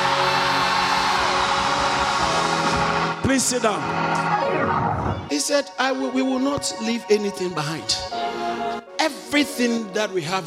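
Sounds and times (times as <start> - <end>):
audience screaming: 0.0 - 5.2
speech: 3.3 - 4.7, 5.3 - 8.2, 9.3 - 10.4.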